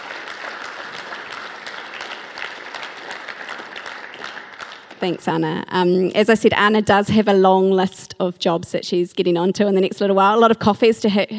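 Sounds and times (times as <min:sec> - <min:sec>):
audience applause: 0:00.0 - 0:05.1
speech: 0:05.0 - 0:11.3.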